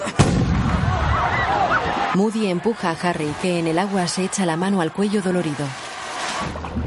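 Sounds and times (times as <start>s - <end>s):
cannon shot signalling the start: 0.1s - 1.5s
speech: 2.2s - 5.8s, 6.4s - 6.7s.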